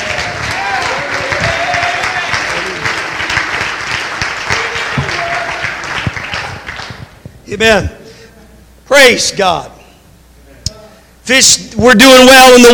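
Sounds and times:
audience clapping hands: 0.0s - 7.2s
speech: 7.5s - 8.0s, 8.9s - 9.7s, 11.3s - 12.7s.

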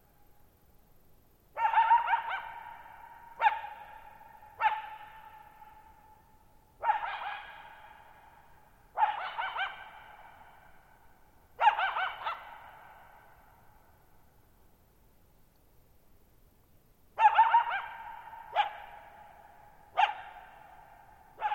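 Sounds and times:
coyote barking and howling: 1.6s - 6.1s, 6.8s - 8.4s, 9.0s - 10.7s, 11.6s - 13.4s, 17.2s - 21.5s.

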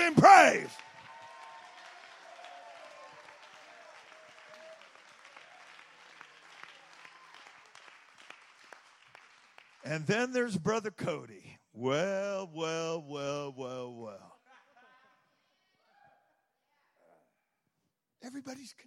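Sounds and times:
crowd audience clapping hands: 0.0s - 10.9s
speech: 0.5s - 0.8s, 9.9s - 14.3s, 18.2s - 18.8s.

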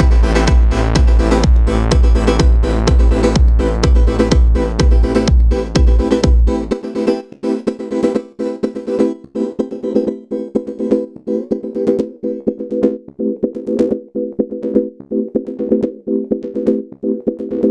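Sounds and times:
drums in live techno performance: 0.0s - 6.9s
techno synths in live performance: 0.0s - 17.6s.

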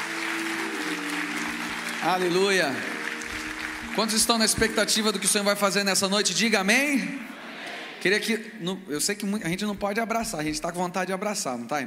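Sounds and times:
audience applauding: 0.0s - 8.4s
speech: 2.0s - 2.9s, 4.0s - 7.3s, 8.0s - 11.8s.

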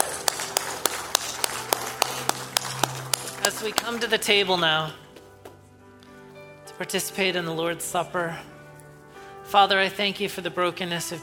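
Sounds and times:
audience clapping hands: 0.0s - 4.9s
speech: 3.5s - 5.0s, 6.8s - 8.6s, 9.5s - 11.2s.

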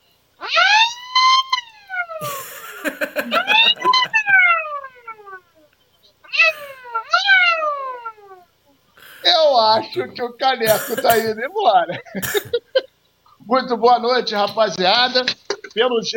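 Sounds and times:
comical siren wailing: 0.6s - 5.6s, 6.4s - 8.4s
speech: 2.2s - 3.5s, 10.0s - 12.6s, 13.5s - 16.1s
laughter: 2.2s - 4.5s, 11.9s - 12.9s.

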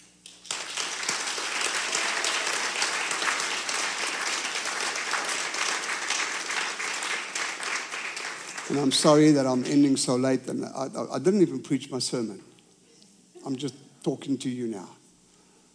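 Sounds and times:
audience applause: 0.2s - 10.2s
speech: 8.7s - 12.5s, 13.5s - 15.0s.

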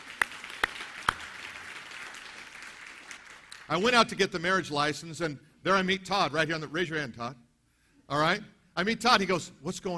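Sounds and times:
applause: 0.0s - 3.9s
speech: 3.7s - 7.4s, 8.1s - 9.9s.

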